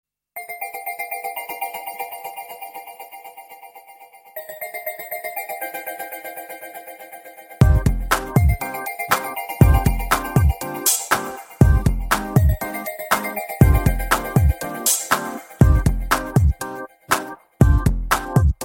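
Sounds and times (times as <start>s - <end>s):
Telugu film love instrumental music: 7.6s - 18.6s.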